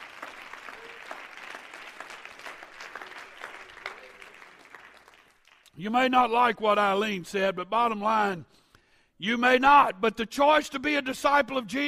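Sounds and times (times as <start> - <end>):
audience clapping hands: 0.0 - 5.8
speech: 5.8 - 8.5, 9.2 - 11.8.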